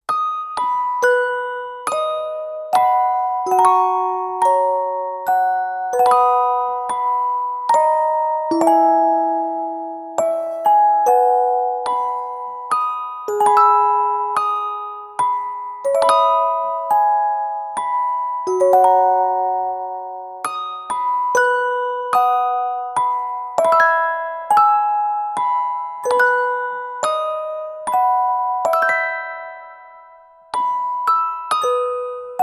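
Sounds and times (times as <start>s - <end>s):
music box melody: 0.1s - 32.4s.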